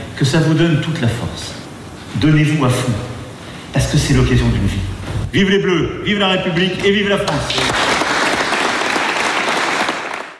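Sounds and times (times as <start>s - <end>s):
speech: 0.2s - 1.6s, 2.2s - 3.1s, 3.7s - 7.9s
applause from a large crowd after a speech: 7.6s - 10.3s.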